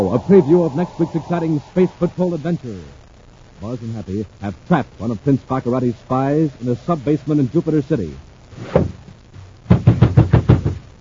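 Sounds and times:
speech: 0.0 - 3.0, 3.6 - 9.0
fists pounding on a locked door: 9.7 - 10.8.

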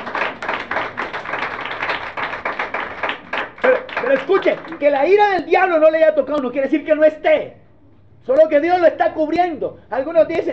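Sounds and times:
audience applauding: 0.0 - 5.2
speech: 4.1 - 7.6, 8.2 - 10.5.

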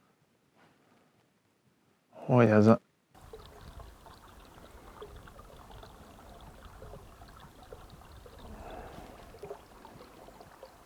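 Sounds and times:
speech: 2.3 - 2.8
spring water flowing: 3.2 - 10.8.

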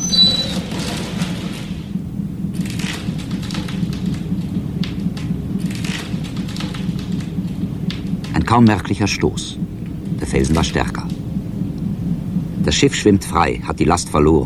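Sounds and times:
force 9 gale wind: 0.0 - 14.4
heavy sea: 0.0 - 14.4
speech: 8.5 - 11.1, 12.7 - 14.4.

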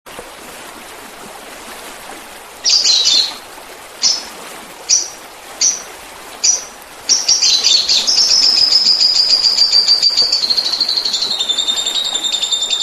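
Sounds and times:
Oriental magpie-robin song: 2.7 - 3.3, 4.9 - 12.8.

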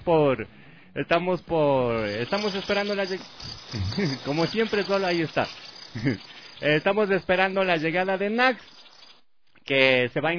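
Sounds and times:
speech: 0.0 - 8.8, 9.7 - 10.3
crickets chirping: 1.9 - 9.3.

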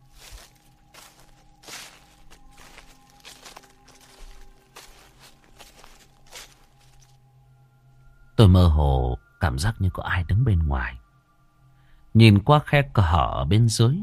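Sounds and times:
footsteps outside a door: 0.0 - 7.2
speech: 8.4 - 11.0, 12.2 - 14.0.

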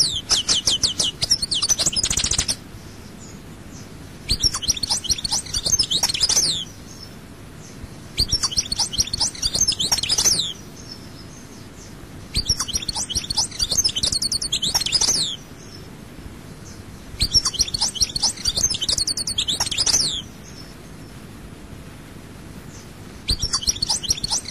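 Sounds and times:
European goldfinch song: 0.0 - 3.0, 4.3 - 7.1, 8.2 - 11.6, 12.3 - 15.8, 17.2 - 20.6, 23.3 - 24.5.

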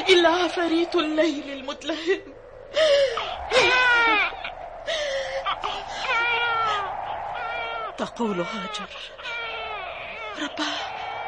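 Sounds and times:
speech: 0.2 - 6.3, 8.0 - 9.3, 10.4 - 11.0
infant crying from thirst: 3.2 - 4.5, 5.4 - 7.5, 8.4 - 10.5.

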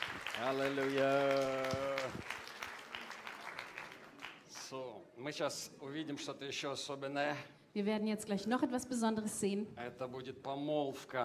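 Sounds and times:
congregation applauding at a Pentecost church service: 0.0 - 4.8
speech: 0.4 - 2.3, 4.7 - 11.2.

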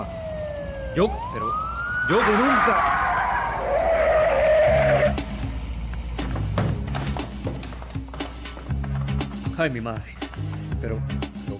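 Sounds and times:
speech: 1.0 - 3.8, 9.6 - 11.3
police patrol car tires squealing while skidding to a stop: 2.1 - 5.4
police patrol car engine idling: 4.7 - 11.1.

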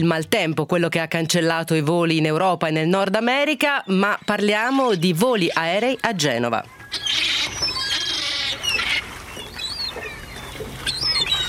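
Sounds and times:
speech: 0.0 - 7.7
seagulls calling: 3.1 - 11.4.

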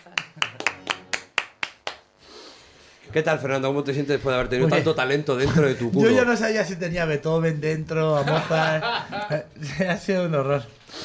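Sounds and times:
laughter: 0.0 - 1.2, 8.1 - 9.8
hand claps on a comedy radio show: 0.0 - 2.1
speech: 3.1 - 10.8.

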